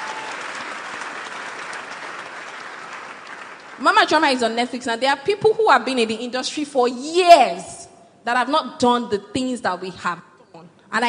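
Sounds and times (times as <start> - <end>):
audience clapping: 0.0 - 4.3
speech: 3.8 - 10.3.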